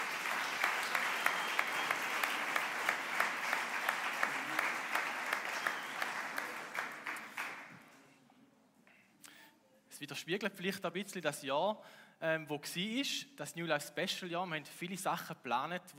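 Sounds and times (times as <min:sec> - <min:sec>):
audience applause: 0:00.0 - 0:07.8
speech: 0:10.0 - 0:15.9.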